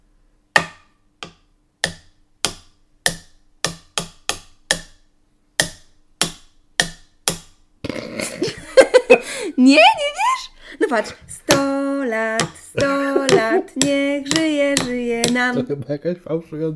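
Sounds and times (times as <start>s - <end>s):
pencil tapping out the rhythm of a song: 0.5s - 7.8s, 11.0s - 15.7s
laughter: 8.0s - 9.5s, 12.6s - 13.8s
speech: 9.1s - 16.7s.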